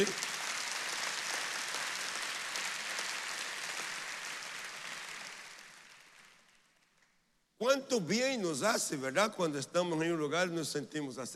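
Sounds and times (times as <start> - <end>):
speech: 0.0 - 0.3, 7.6 - 11.3
audience applauding: 0.0 - 7.2.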